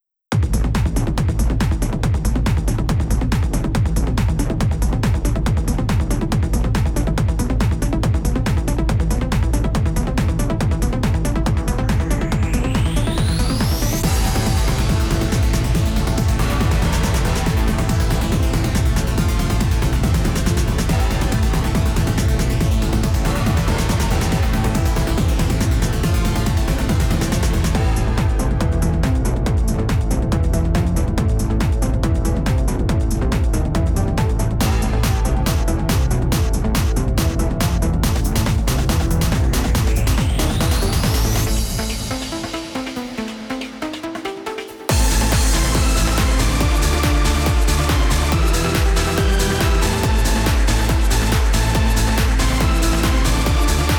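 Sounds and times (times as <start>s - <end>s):
chaotic beat: 0.3s - 53.9s.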